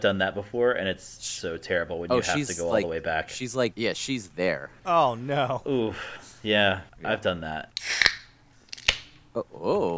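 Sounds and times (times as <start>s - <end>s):
speech: 0.0s - 8.1s, 9.3s - 9.9s
can of Boddington's Pub Ale cracked open: 7.8s - 9.1s.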